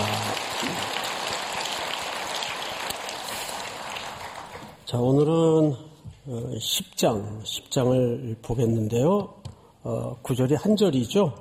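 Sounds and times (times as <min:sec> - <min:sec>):
audience applause: 0:00.0 - 0:04.8
speech: 0:04.9 - 0:11.3.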